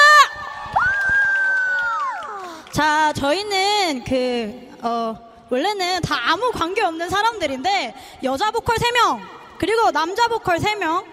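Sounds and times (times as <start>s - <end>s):
audience applause: 0.6s - 2.7s
speech: 2.8s - 11.1s.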